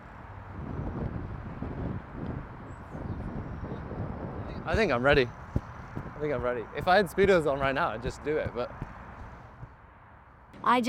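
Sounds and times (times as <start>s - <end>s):
wind blowing hard outdoors near a platform: 0.0s - 10.8s
speech: 4.7s - 5.4s, 6.2s - 8.8s, 10.6s - 10.8s.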